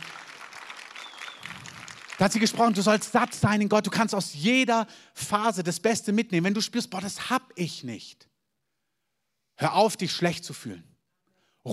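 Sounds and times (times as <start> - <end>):
audience applause: 0.0 - 3.4
speech: 2.2 - 8.3, 9.6 - 10.9.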